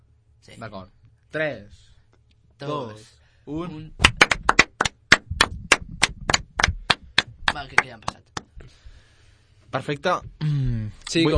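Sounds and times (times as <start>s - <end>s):
speech: 0.4s - 1.9s, 2.6s - 4.4s, 7.6s - 8.9s, 9.7s - 11.3s
hands clapping: 4.0s - 8.6s.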